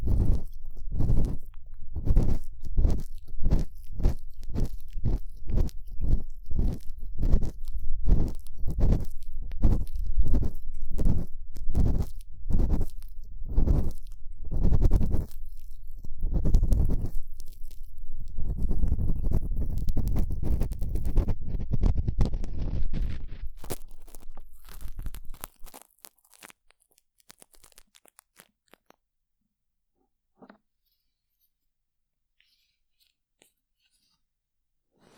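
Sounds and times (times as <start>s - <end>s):
ear cleaning sounds: 0.0s - 25.8s.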